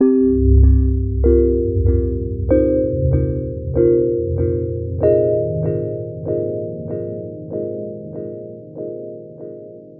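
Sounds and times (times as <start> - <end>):
IDM electronic music melody: 0.0 - 9.9.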